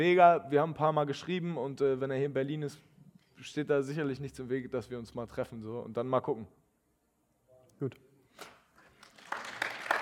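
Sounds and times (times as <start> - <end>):
speech: 0.0 - 6.6, 7.8 - 8.5
applause: 8.8 - 10.0.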